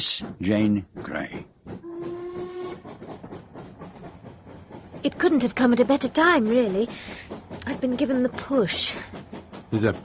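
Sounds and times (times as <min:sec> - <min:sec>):
speech: 0:00.0 - 0:01.5, 0:05.0 - 0:10.0
steam train hiss of escaping steam with chuffing: 0:00.0 - 0:10.0
steam train whistle: 0:01.8 - 0:02.9.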